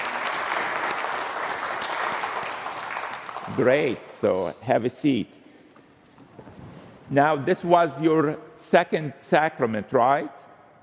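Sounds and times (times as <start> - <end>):
crowd applauding: 0.0 - 4.6
speech: 3.5 - 5.4, 7.1 - 10.3.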